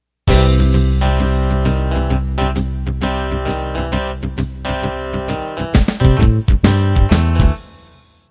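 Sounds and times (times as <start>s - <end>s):
country shuffle music: 0.3s - 8.2s.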